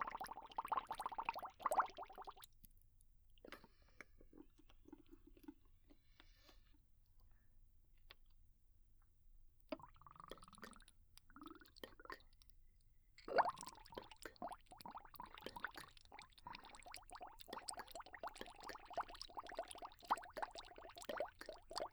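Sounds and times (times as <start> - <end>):
bubbles: 0.0 - 2.4, 13.2 - 21.9.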